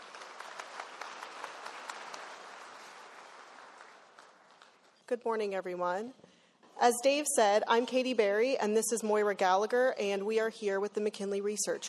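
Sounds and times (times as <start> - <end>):
audience applauding to welcome two speakers at a presentation: 0.0 - 5.1
speech: 5.1 - 6.2, 6.8 - 11.8.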